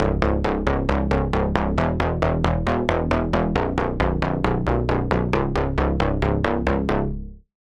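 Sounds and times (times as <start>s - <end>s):
bass: 0.0s - 7.6s.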